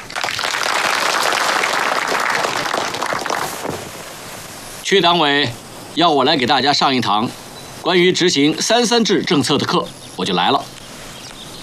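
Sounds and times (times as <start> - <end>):
audience applause: 0.0 - 3.9
speech: 4.9 - 10.7.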